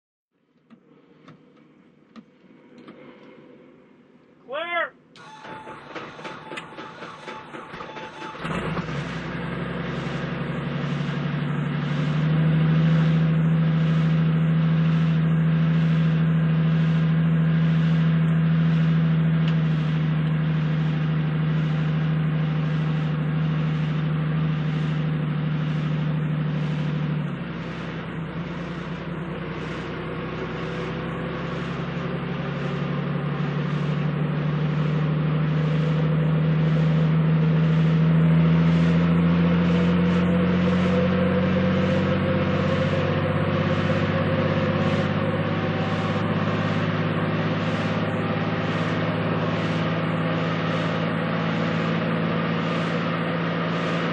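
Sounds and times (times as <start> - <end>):
helicopter starting and lifting off heard from the interior: 0.6 - 54.1.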